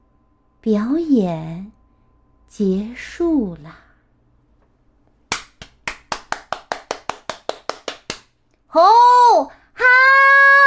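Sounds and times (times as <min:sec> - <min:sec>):
speech: 0:00.6 - 0:01.8, 0:02.5 - 0:03.8, 0:08.7 - 0:10.4
audience clapping: 0:05.3 - 0:08.3.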